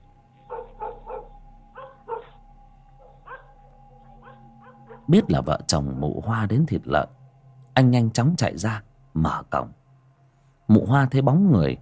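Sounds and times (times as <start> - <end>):
faint steady hum: 0.0 - 11.8
yellow dog barking at night at a house: 0.5 - 2.4, 3.0 - 3.6, 4.2 - 6.2
speech: 5.1 - 7.2, 7.8 - 9.8, 10.7 - 11.8.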